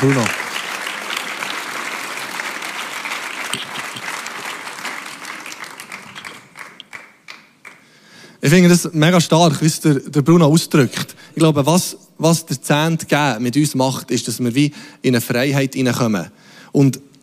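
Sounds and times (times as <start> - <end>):
speech: 0.0 - 0.4, 8.5 - 17.1
audience applause: 0.0 - 7.9.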